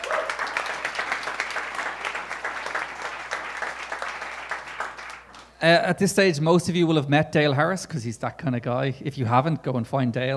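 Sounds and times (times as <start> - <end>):
round of applause: 0.0 - 5.6
speech: 5.6 - 10.3.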